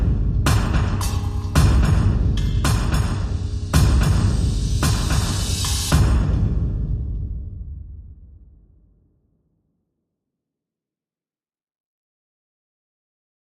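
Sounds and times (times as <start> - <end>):
drums: 0.0 - 8.1.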